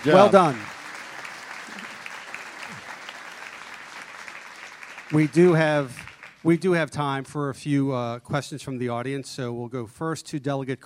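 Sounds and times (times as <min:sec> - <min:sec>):
speech: 0:00.0 - 0:00.7, 0:05.1 - 0:10.8
audience round of applause: 0:00.0 - 0:06.7.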